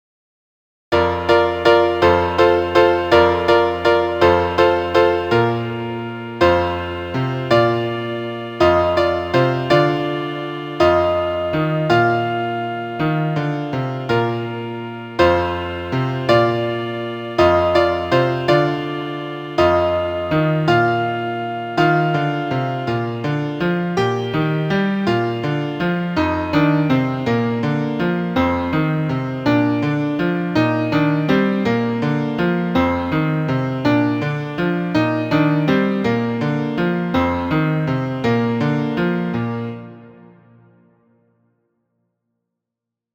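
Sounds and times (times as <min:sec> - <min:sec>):
piano: 0:00.9 - 0:41.3.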